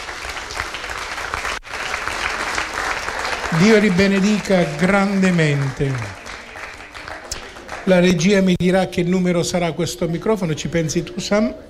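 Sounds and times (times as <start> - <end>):
audience applause: 0.0 - 8.6
speech: 3.5 - 6.2, 7.9 - 11.6.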